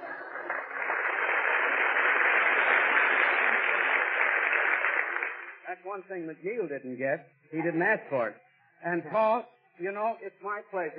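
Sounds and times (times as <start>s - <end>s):
studio audience clapping: 0.0s - 5.8s
speech: 5.8s - 10.9s.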